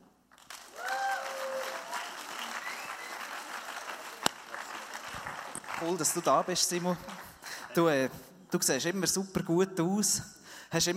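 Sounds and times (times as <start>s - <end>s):
applause: 0.3s - 7.8s
speech: 5.8s - 10.9s.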